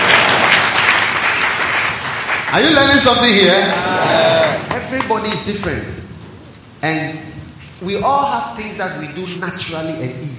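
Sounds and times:
audience clapping: 0.0s - 5.9s
speech: 2.5s - 6.1s, 6.8s - 7.2s, 7.8s - 10.3s.

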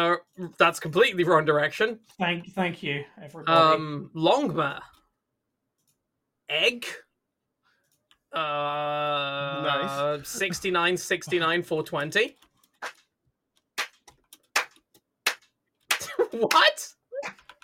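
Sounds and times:
speech: 0.0s - 5.0s, 6.5s - 7.0s, 8.3s - 13.0s, 16.3s - 17.4s
slow hand clapping: 13.8s - 17.4s.

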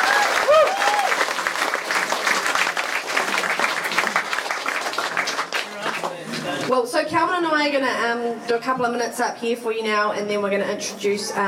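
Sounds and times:
audience applause: 0.0s - 6.7s
speech: 6.8s - 11.4s.

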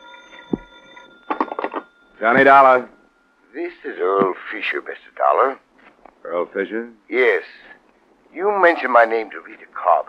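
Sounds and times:
telephone ringing: 0.0s - 4.1s
faint steady hum: 0.0s - 10.0s
speech: 2.2s - 3.0s, 3.6s - 5.6s, 6.2s - 7.7s, 8.3s - 10.0s.

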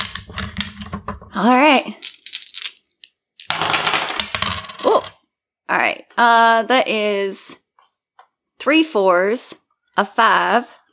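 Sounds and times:
dice tumbling and rolling across a hard surface: 0.0s - 5.2s
speech: 1.4s - 2.1s, 5.9s - 7.6s, 8.6s - 10.8s.

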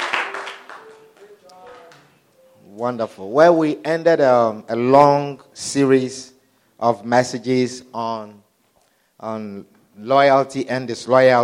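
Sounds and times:
audience clapping hands: 0.0s - 2.2s
speech: 2.8s - 8.4s, 9.2s - 11.4s.

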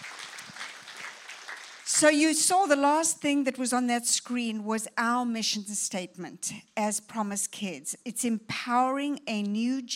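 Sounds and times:
audience applauding with hand claps: 0.0s - 2.1s
speech: 2.0s - 9.9s.

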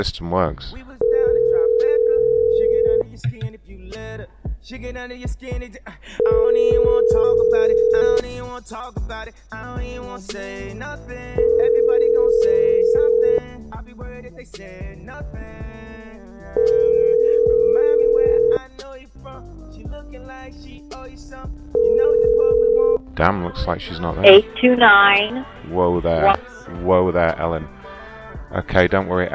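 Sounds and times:
speech: 0.0s - 1.0s, 4.2s - 13.2s, 14.0s - 15.6s, 19.2s - 27.8s, 28.5s - 29.3s
ringback tone of an outgoing telephone call: 1.0s - 3.0s, 6.2s - 8.2s, 11.4s - 13.4s, 16.6s - 18.6s, 21.8s - 23.0s.

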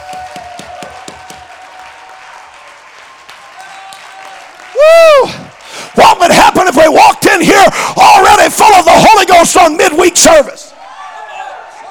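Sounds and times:
audience clapping: 0.0s - 6.8s
speech: 7.4s - 10.6s.

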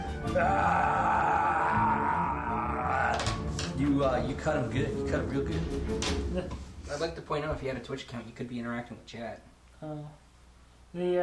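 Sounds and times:
man imitating a scream of pain: 0.2s - 3.3s
speech: 0.4s - 1.2s, 4.0s - 10.2s, 10.9s - 11.2s.

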